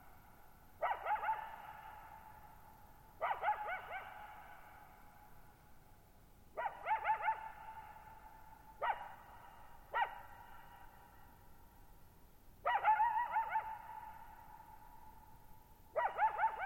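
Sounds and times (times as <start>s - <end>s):
coyote yipping and howling: 0.8s - 2.4s, 3.2s - 5.0s, 6.6s - 11.0s, 12.6s - 15.2s, 15.9s - 16.6s.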